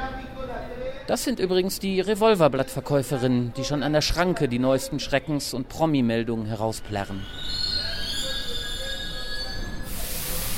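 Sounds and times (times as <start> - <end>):
speech: 1.1 - 7.6
rubber-tyred metro train squealing: 6.4 - 10.5.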